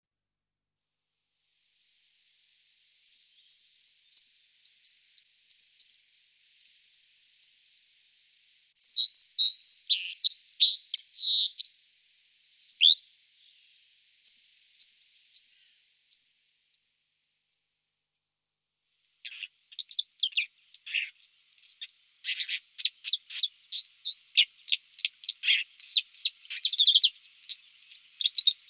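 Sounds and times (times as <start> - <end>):
White-throated dipper Cinclus cinclus singing high scratchy notes and buzzy trills: 1.5 - 11.7, 12.6 - 13.0, 19.0 - 28.6.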